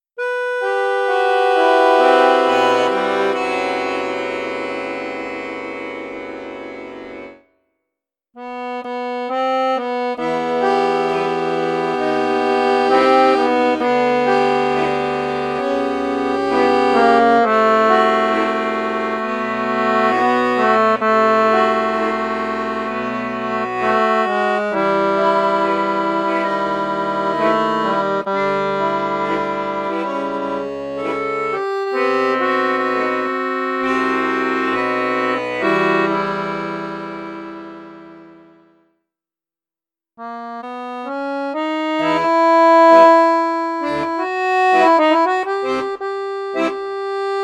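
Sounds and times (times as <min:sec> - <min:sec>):
accordion in bassoon register: 0:00.2 - 0:07.4, 0:08.4 - 0:38.9, 0:40.2 - 0:47.4.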